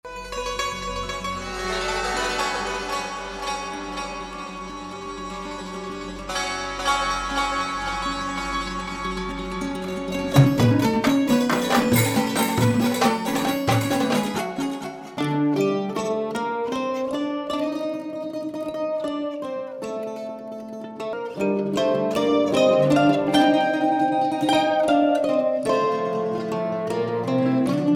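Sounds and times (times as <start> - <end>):
music: 0.0 - 27.9.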